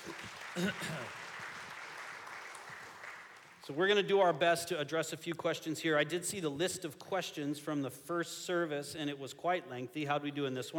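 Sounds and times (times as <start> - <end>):
audience clapping: 0.0 - 3.8
speech: 0.1 - 1.2, 3.7 - 10.7.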